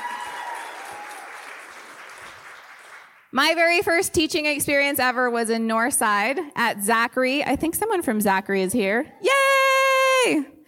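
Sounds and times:
audience applause: 0.0 - 3.3
speech: 3.3 - 9.4, 10.2 - 10.5.

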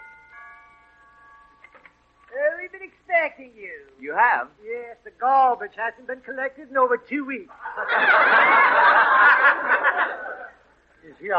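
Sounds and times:
doorbell ringing: 0.0 - 2.4
speech: 3.2 - 8.7, 11.1 - 11.3
laughter: 7.5 - 10.7.

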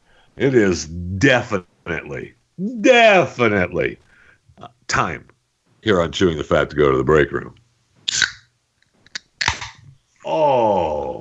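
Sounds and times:
speech: 0.4 - 8.3, 10.3 - 11.1
soda can cracking open with fizzing hiss: 8.1 - 8.5.

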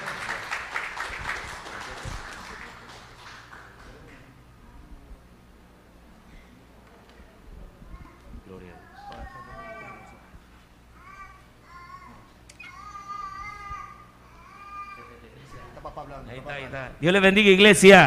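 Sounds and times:
audience applause: 0.0 - 4.4
speech: 16.0 - 18.0.

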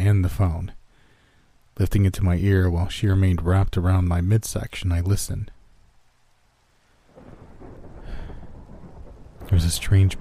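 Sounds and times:
steady rain: 0.0 - 10.2
speech: 0.1 - 0.8, 1.8 - 5.6, 9.5 - 10.2
low rumbling: 7.2 - 10.2.

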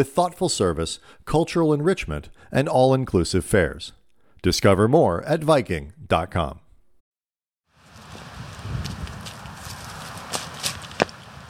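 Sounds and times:
speech: 0.0 - 6.6
footsteps through bramble behind a suburban shopping center in Rye Brook, New York: 7.8 - 11.4
stems snapping: 8.8 - 11.2.

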